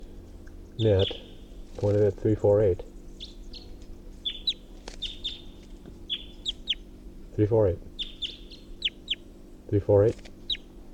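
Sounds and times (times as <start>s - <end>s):
speech: 0.8s - 1.2s, 1.8s - 2.9s, 7.4s - 7.9s, 9.7s - 10.3s
wild bird calling in a tall pine: 0.8s - 1.7s, 3.0s - 7.0s, 7.9s - 10.9s.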